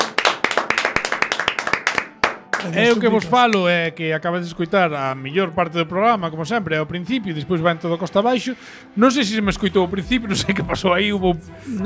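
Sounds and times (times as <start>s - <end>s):
sparse audience applause on a program: 0.0s - 3.7s
speech: 2.6s - 11.8s.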